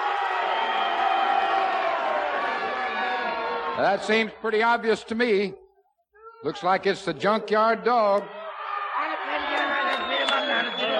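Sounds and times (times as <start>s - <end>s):
arena crowd cheering for a wrestler: 0.0s - 4.3s, 8.1s - 10.9s
speech: 3.8s - 5.6s, 6.4s - 8.4s.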